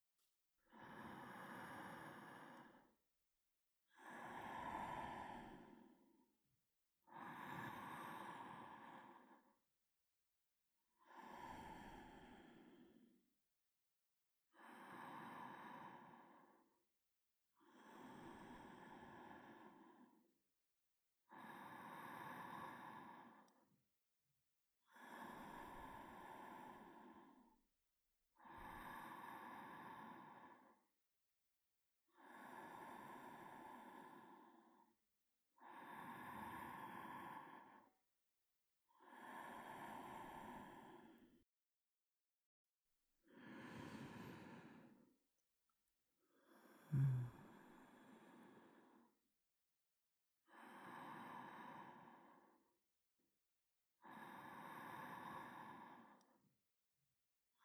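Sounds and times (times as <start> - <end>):
person breathing in sleep: 0.7 - 2.9, 4.0 - 6.1, 7.1 - 9.5, 11.1 - 13.0, 14.6 - 16.6, 17.7 - 20.2, 21.3 - 23.6, 24.9 - 27.4, 28.4 - 30.8, 32.2 - 34.8, 35.6 - 38.0, 39.0 - 41.4, 43.3 - 45.1, 46.4 - 49.1, 50.5 - 52.6, 54.0 - 56.3.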